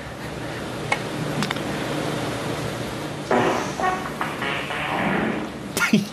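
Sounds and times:
steady hiss: 0.2s - 6.1s
fart noise from audience at snooker final: 3.3s - 5.7s.

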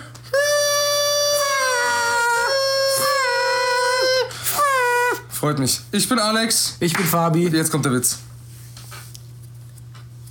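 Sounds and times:
voice imitating a toy horn: 0.3s - 5.3s
speech: 5.4s - 8.3s.

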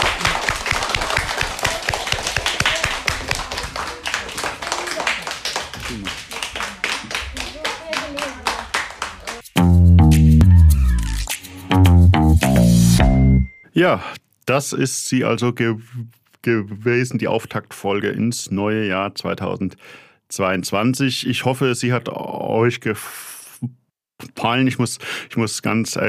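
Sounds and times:
small group clapping: 0.0s - 9.5s
loud tonal music with a steady low beat: 9.5s - 13.5s
speech: 13.8s - 26.0s.

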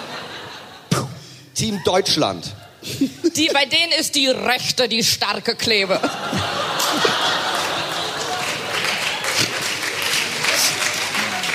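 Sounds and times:
laughter: 0.0s - 1.0s, 5.9s - 11.5s
speech: 1.6s - 7.5s
people clapping: 6.4s - 11.5s.

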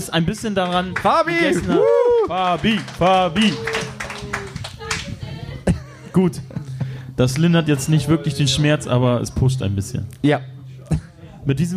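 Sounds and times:
speech: 0.0s - 3.8s, 6.2s - 6.6s, 7.2s - 11.7s
applause: 0.2s - 5.2s.

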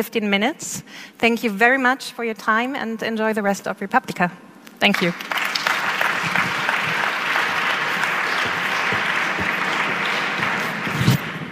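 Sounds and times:
speech: 0.0s - 5.4s
audience applause: 5.0s - 11.5s.

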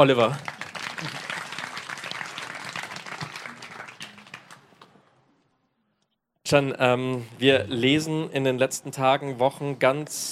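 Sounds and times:
speech: 0.0s - 1.2s, 6.5s - 10.3s
audience applause: 0.0s - 5.0s.

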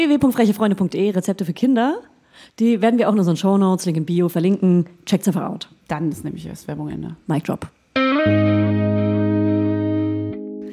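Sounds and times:
speech: 0.0s - 9.0s
electric guitar with underwater-like effect: 8.0s - 10.7s.

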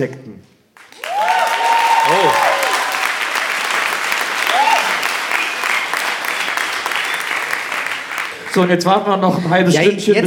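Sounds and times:
speech: 0.0s - 0.3s, 2.1s - 2.5s, 8.6s - 10.2s
audience applause: 0.8s - 9.0s
rising whistle or cheer: 1.0s - 3.1s, 4.4s - 7.5s.

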